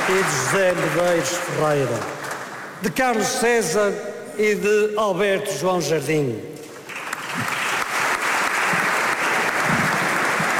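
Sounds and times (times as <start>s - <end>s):
applause in parliament chamber: 0.0s - 3.2s, 6.7s - 10.5s
speech: 0.1s - 2.2s, 2.8s - 6.5s.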